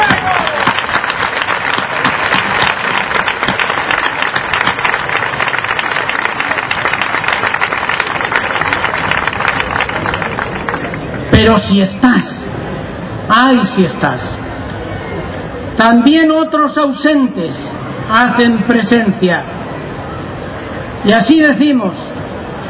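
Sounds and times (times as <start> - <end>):
large crowd applause: 0.0 - 11.3
speech: 11.6 - 12.3, 13.3 - 14.4, 15.8 - 19.5, 21.0 - 22.0.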